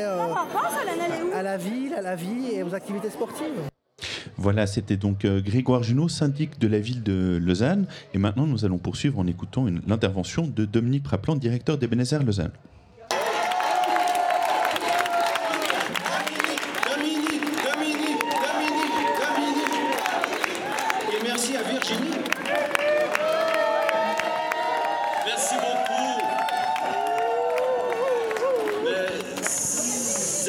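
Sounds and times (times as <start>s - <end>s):
speech: 0.0s - 3.8s, 4.4s - 12.8s
audience applause and cheering: 13.1s - 30.4s.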